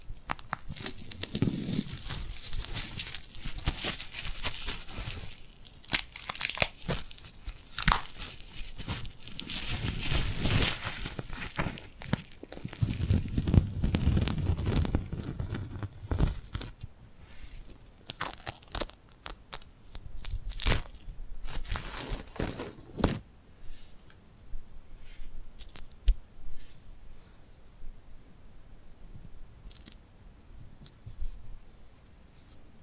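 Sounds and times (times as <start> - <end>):
sticky glued hands pulling apart and rubbing together: 0.1 - 23.2.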